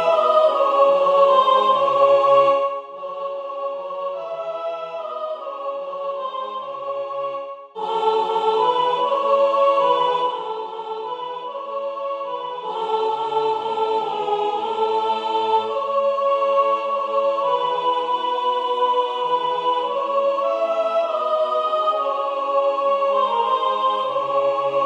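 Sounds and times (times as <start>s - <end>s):
soprano singing: 0.0s - 24.8s.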